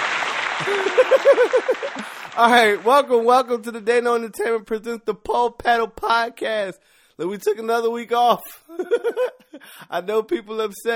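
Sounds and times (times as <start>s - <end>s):
audience clapping: 0.0s - 3.4s
laughter: 0.4s - 2.4s, 8.7s - 9.5s
speech: 0.6s - 10.9s.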